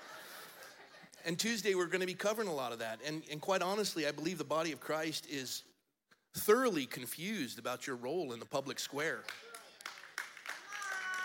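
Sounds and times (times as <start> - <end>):
laughter: 0.0 - 1.2
speech: 1.2 - 5.7, 6.3 - 9.5
audience clapping: 9.1 - 11.2.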